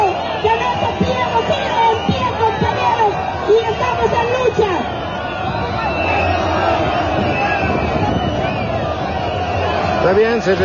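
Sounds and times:
shrill whistles: 0.0s - 10.0s
crowd murmuring and shouting: 0.0s - 10.6s
speech: 10.1s - 10.6s.

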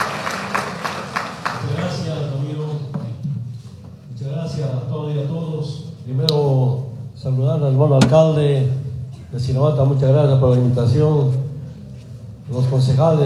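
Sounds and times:
crowd applause: 0.0s - 2.3s
speech: 4.5s - 11.4s, 12.5s - 13.2s.

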